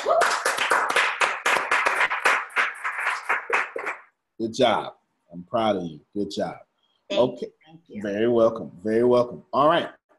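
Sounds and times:
audience clapping: 0:00.0 - 0:04.2
speech: 0:04.4 - 0:10.0.

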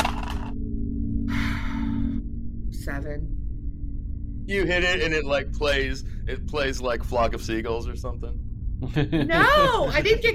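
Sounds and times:
dice being rolled: 0:00.0 - 0:00.5
steady low hum: 0:00.0 - 0:10.3
speech: 0:02.9 - 0:03.4, 0:04.5 - 0:10.3
laughter: 0:08.8 - 0:10.2.

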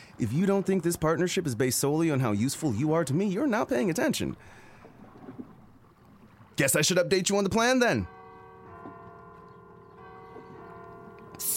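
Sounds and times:
speech: 0:00.2 - 0:04.6, 0:06.6 - 0:08.2
clock tower bell ringing: 0:07.6 - 0:11.5.

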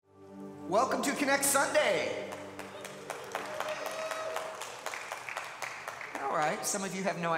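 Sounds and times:
speech: 0:00.7 - 0:02.4, 0:06.3 - 0:07.3
audience applause: 0:02.2 - 0:07.2.

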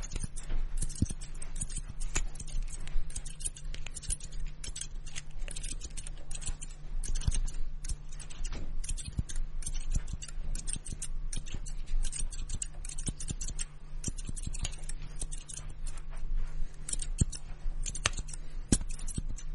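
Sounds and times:
scissors snipping in a simulated haircut: 0:00.0 - 0:16.1, 0:16.7 - 0:19.5
comb scratching: 0:00.0 - 0:19.5
steady low hum: 0:00.0 - 0:19.5.

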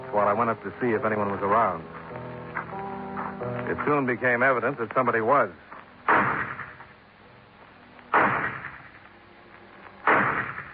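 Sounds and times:
speech: 0:00.1 - 0:02.2, 0:03.4 - 0:06.3
gunshots fired from a low barn-like building: 0:06.1 - 0:06.9, 0:08.1 - 0:09.0, 0:10.0 - 0:10.7.

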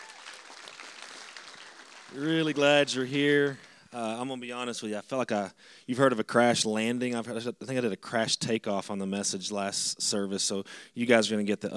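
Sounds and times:
crowd audience applause: 0:00.0 - 0:03.8
speech: 0:02.1 - 0:11.7.

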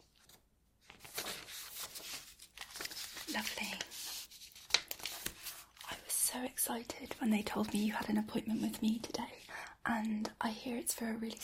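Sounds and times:
paper sheets rustling as they are handled: 0:00.0 - 0:05.9
speech: 0:03.4 - 0:04.0, 0:06.4 - 0:11.4.

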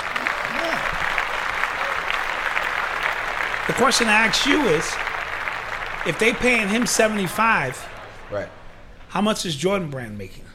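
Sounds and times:
laughter: 0:00.0 - 0:02.5, 0:03.6 - 0:09.1
applause: 0:00.0 - 0:08.7
speech: 0:03.7 - 0:05.1, 0:06.0 - 0:10.5.

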